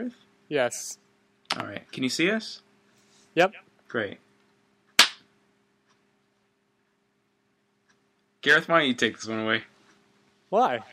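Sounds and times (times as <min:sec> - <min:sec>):
speech: 0:00.0 - 0:02.6, 0:03.4 - 0:04.2, 0:08.4 - 0:09.7, 0:10.5 - 0:10.9
faint low hum: 0:00.0 - 0:10.9
single hand clap for the slate: 0:05.0 - 0:05.2.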